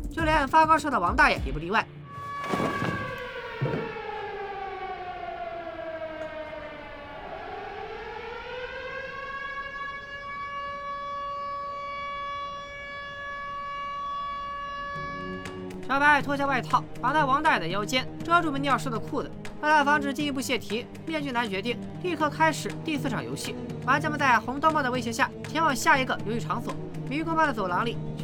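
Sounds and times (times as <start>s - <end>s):
speech: 0.2s - 2.8s, 16.0s - 28.2s
alarm siren blaring: 2.1s - 16.6s.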